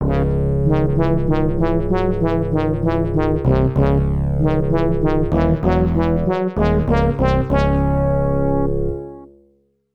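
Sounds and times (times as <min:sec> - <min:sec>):
defeat fanfare: 0:00.0 - 0:09.3.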